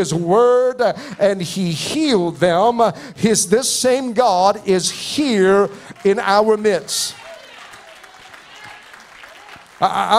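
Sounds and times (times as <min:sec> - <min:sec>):
speech: 0:00.0 - 0:07.2, 0:09.8 - 0:10.1
audience clapping: 0:05.7 - 0:10.1.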